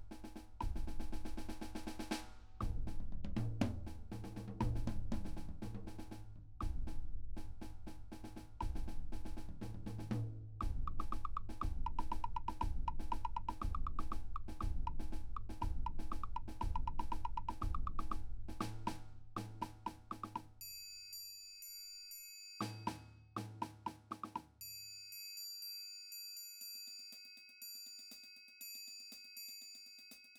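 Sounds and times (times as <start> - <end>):
snare drum: 0.0 - 20.6, 22.6 - 24.6
triangle: 20.4 - 23.4, 24.6 - 30.3.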